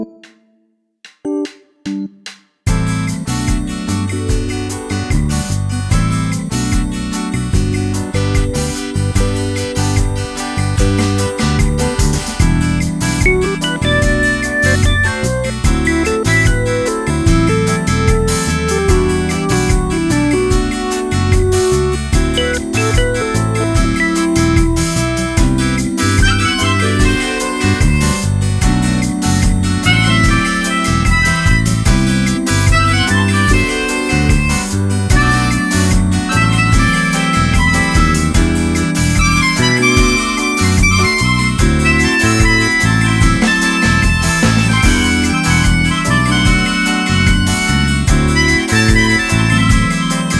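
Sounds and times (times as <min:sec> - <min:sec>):
background elevator music: 0:01.3 - 0:50.3.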